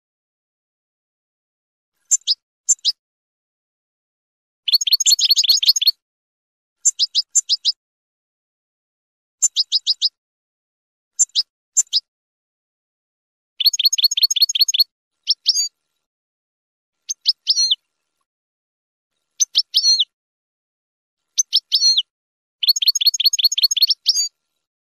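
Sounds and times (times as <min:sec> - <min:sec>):
finch song: 0:02.0 - 0:03.0, 0:04.6 - 0:06.0, 0:06.8 - 0:07.8, 0:09.4 - 0:10.2, 0:11.1 - 0:12.1, 0:13.6 - 0:16.1, 0:17.0 - 0:18.3, 0:19.1 - 0:20.2, 0:21.2 - 0:24.7.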